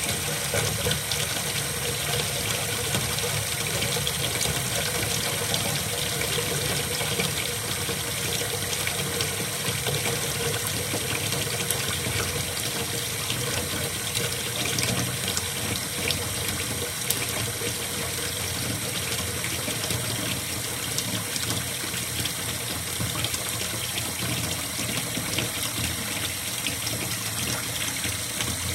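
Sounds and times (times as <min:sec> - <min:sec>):
water flowing into a bowl: 0:00.0 - 0:28.7.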